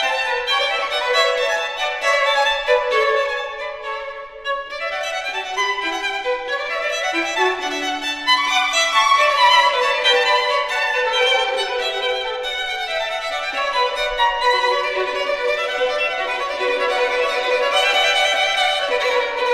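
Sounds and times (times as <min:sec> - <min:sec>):
violin duo playing: 0:00.0 - 0:19.5.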